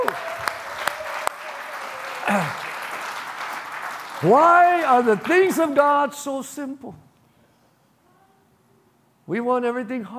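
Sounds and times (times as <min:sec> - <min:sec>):
audience clapping: 0:00.0 - 0:06.0
speech: 0:04.2 - 0:07.0, 0:09.3 - 0:10.1.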